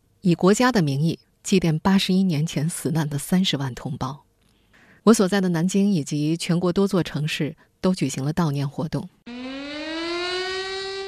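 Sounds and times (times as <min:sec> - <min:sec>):
speech: 0:00.2 - 0:04.2, 0:05.0 - 0:09.5
air raid siren: 0:09.2 - 0:11.0.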